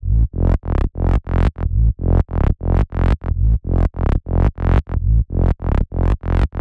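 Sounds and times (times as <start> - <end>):
bass: 0.0 - 6.6.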